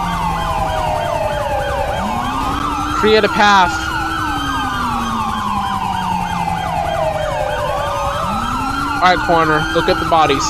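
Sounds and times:
ambulance and fire engine sirens in the video game FivePD: 0:00.0 - 0:10.4
speech: 0:03.0 - 0:03.8, 0:09.0 - 0:10.4.

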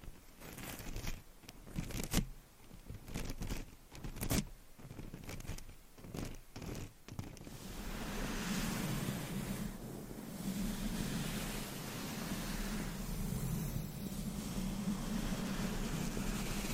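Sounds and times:
scratching and tapping: 0:00.0 - 0:07.6
dense brushing or rubbing: 0:00.0 - 0:16.7
low hum-like undertone: 0:07.5 - 0:16.7.

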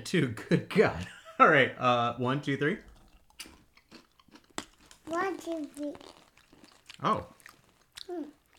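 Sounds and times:
speech: 0:00.0 - 0:03.5, 0:05.1 - 0:06.2, 0:07.0 - 0:07.4, 0:08.1 - 0:08.4
crunchy peanut-smelling Brazilian snacks being bitten and chewed: 0:02.8 - 0:08.5.

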